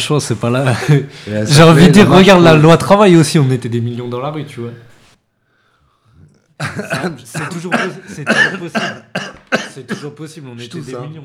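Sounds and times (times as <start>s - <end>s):
speech: 0.0s - 4.9s, 6.6s - 11.2s
person coughing: 6.6s - 10.2s.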